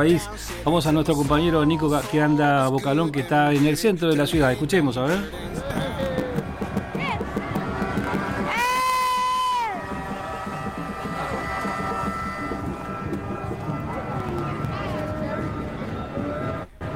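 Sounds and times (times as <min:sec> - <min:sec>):
speech: 0:00.0 - 0:05.6
crowd in the city centre: 0:04.3 - 0:16.9.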